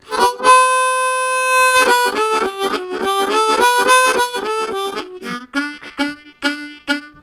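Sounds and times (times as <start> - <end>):
harmonica vamp: 0.0 - 7.2.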